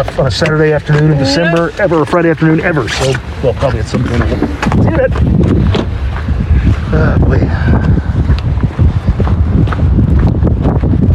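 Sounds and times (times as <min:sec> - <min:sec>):
speech: 0:00.0 - 0:06.0, 0:06.9 - 0:07.8
wind gusting and buffeting the microphone outdoors on a cold December day: 0:00.0 - 0:11.1.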